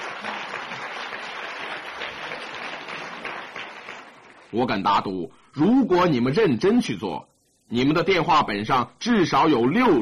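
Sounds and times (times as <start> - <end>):
audience applause: 0.0 - 4.6
speech: 4.5 - 10.0.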